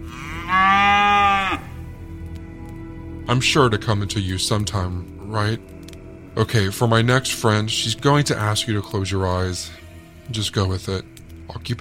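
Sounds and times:
cow mooing sound effect: 0.0s - 1.8s
speech: 3.3s - 5.8s, 6.4s - 11.7s.

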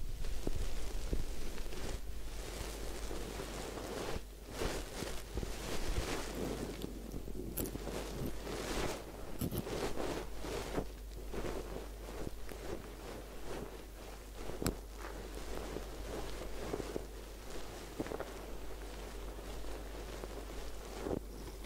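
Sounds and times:
crackling bursts: 0.0s - 21.6s
hair scrubbing during a head spa wash and massage: 0.0s - 21.6s.

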